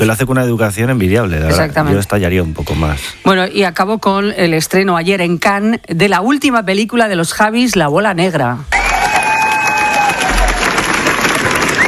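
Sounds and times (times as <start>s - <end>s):
speech: 0.0s - 8.8s
audience applause at a film premiere: 8.7s - 11.8s
crowd cheering: 8.7s - 11.8s.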